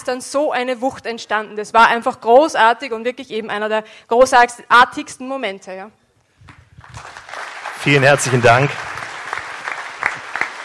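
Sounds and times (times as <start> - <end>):
speech: 0.0 - 6.0, 7.8 - 8.9
audience applause: 6.8 - 10.6.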